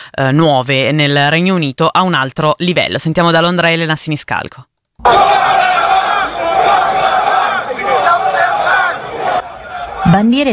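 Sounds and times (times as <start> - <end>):
speech: 0.1 - 5.6, 10.1 - 10.5
large crowd chanting slogan in Portsmouth: 5.0 - 10.5.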